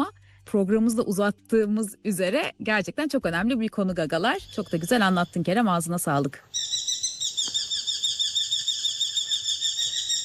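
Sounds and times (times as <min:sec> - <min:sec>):
speech: 0:00.5 - 0:06.6
recorded bird call: 0:06.5 - 0:10.2.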